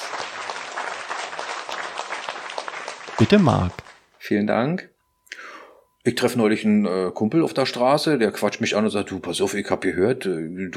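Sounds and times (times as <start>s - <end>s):
audience applause: 0.0s - 4.0s
speech: 3.2s - 10.7s.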